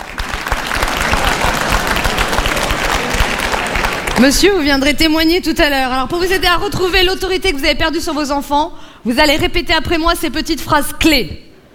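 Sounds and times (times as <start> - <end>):
audience applause: 0.0 - 4.3
speech: 4.2 - 11.4.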